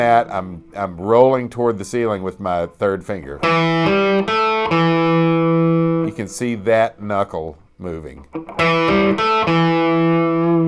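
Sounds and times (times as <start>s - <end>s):
speech: 0.0s - 4.9s, 6.2s - 10.2s
distorted electric guitar notes: 3.4s - 6.1s, 8.2s - 10.6s.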